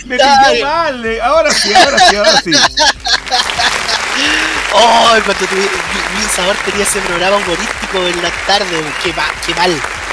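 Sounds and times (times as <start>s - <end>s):
speech: 0.0s - 3.5s, 4.2s - 9.9s
laughter: 1.4s - 9.6s
excited voices and cheering: 3.0s - 10.1s
audience applause: 3.1s - 10.1s.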